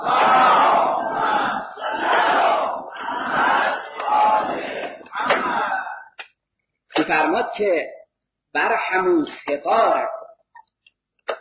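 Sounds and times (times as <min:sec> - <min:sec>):
crowd chanting salawat in unison: 0:00.0 - 0:06.1
speech: 0:07.6 - 0:10.2.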